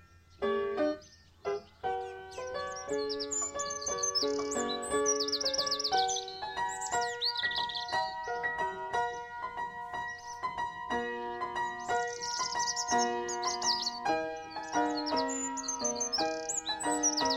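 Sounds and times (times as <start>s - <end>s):
spring birdsong: 0.0s - 17.3s.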